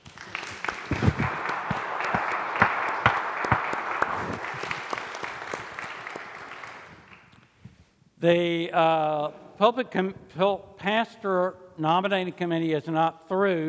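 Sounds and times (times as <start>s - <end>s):
audience applauding after unanimous vote: 0.0s - 7.3s
speech: 8.2s - 13.6s.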